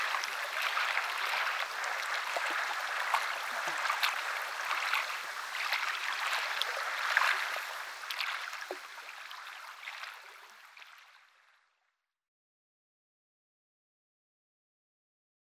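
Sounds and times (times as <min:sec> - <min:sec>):
water sounds of a lake: 0:00.0 - 0:11.6.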